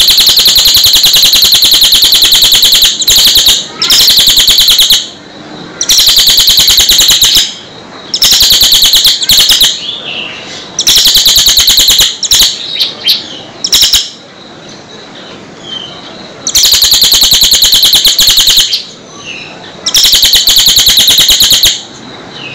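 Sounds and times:
bird singing rapid high chattering trills: 0:00.0 - 0:05.2, 0:05.8 - 0:22.5.

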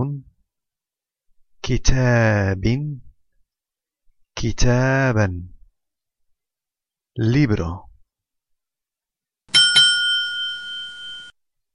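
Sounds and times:
speech: 0:01.7 - 0:03.1, 0:04.4 - 0:05.5, 0:07.2 - 0:07.9
bell ringing with a bicycle-bell tone: 0:09.5 - 0:11.4.

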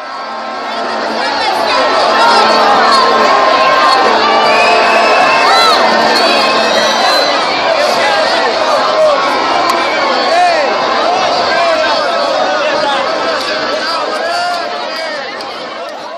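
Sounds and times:
street crowd screaming and cheering on Azpilicueta street in Brazil: 0:00.0 - 0:16.1.

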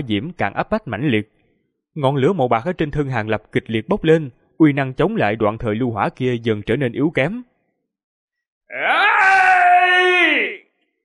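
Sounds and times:
speech: 0:00.0 - 0:01.4, 0:02.0 - 0:07.5, 0:08.7 - 0:10.1
man's anguished scream: 0:08.7 - 0:10.6.

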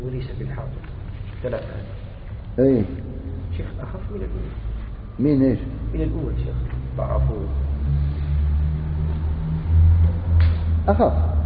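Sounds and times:
speech: 0:00.2 - 0:02.0, 0:02.6 - 0:08.1, 0:10.9 - 0:11.4
car passing by: 0:06.0 - 0:11.4.

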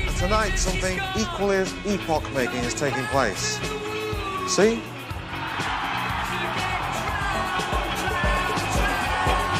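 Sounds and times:
speech: 0:00.2 - 0:04.9
crowd applauding the DJ: 0:04.8 - 0:09.5.

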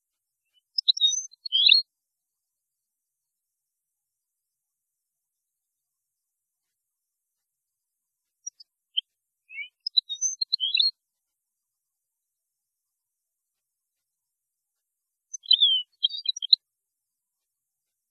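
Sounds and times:
European goldfinch song: 0:00.5 - 0:01.8, 0:09.5 - 0:10.9, 0:15.3 - 0:16.6.

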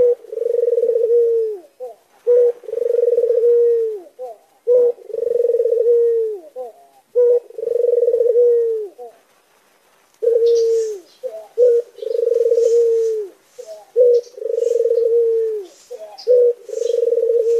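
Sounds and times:
Barbary dove cooing: 0:00.0 - 0:09.3, 0:10.2 - 0:17.5.

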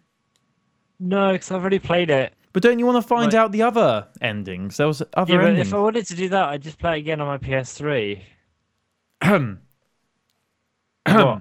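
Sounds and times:
speech: 0:01.0 - 0:08.4, 0:09.2 - 0:09.6, 0:11.1 - 0:11.3
person coughing: 0:05.4 - 0:05.7, 0:09.2 - 0:09.6, 0:11.1 - 0:11.3
throat clearing: 0:09.2 - 0:09.6, 0:11.1 - 0:11.3.

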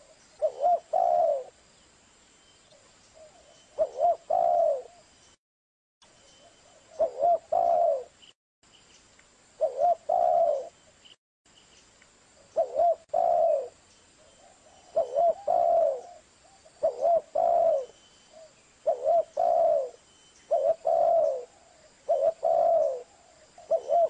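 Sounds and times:
spotted dove cooing on a lure recording: 0:00.0 - 0:01.6, 0:03.2 - 0:05.1, 0:06.6 - 0:08.2, 0:09.6 - 0:10.8, 0:12.5 - 0:13.8, 0:14.4 - 0:24.0.

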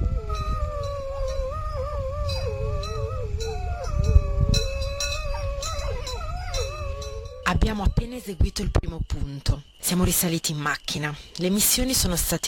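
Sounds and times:
recorded wolf howl played outdoors: 0:00.0 - 0:08.7
speech: 0:07.5 - 0:12.4.

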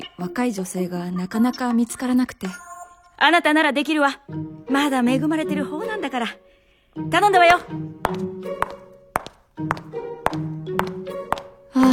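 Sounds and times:
speech: 0:00.2 - 0:08.8
soft music: 0:03.9 - 0:11.9
brisk clicking footsteps: 0:07.5 - 0:11.9.

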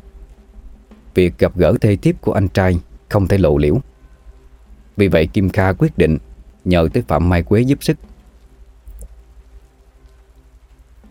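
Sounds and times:
heavy rain falling: 0:00.0 - 0:11.0
speech: 0:01.2 - 0:03.9, 0:05.0 - 0:08.1.

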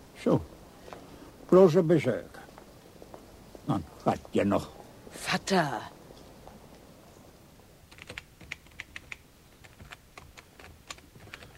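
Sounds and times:
speech: 0:00.2 - 0:00.6, 0:01.5 - 0:02.4, 0:03.7 - 0:06.0
typing on a computer keyboard: 0:07.9 - 0:11.5.

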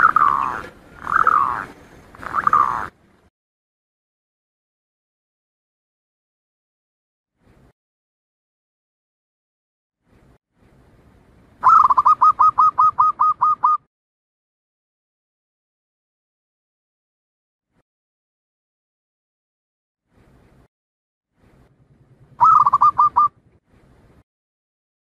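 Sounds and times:
Zebra dove staccato cooing song: 0:00.0 - 0:02.9, 0:11.6 - 0:13.8, 0:22.4 - 0:23.3.

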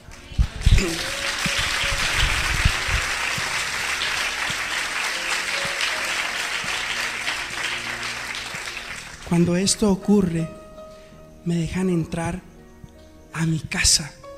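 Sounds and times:
audience applause: 0:00.0 - 0:09.6
speech: 0:00.8 - 0:01.2, 0:09.3 - 0:10.6, 0:11.4 - 0:12.5, 0:13.4 - 0:14.2.

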